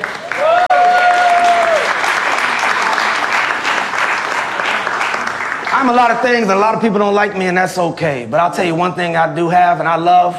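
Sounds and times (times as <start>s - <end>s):
audience applause: 0.0s - 6.4s
speech: 5.8s - 10.3s.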